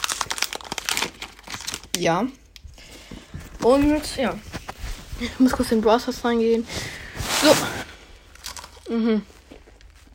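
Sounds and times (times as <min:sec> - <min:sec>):
chocolate cookie packaging crinkling: 0:00.0 - 0:02.1, 0:07.4 - 0:08.9
speech: 0:02.0 - 0:02.4, 0:03.6 - 0:04.5, 0:05.2 - 0:07.8, 0:08.9 - 0:09.3.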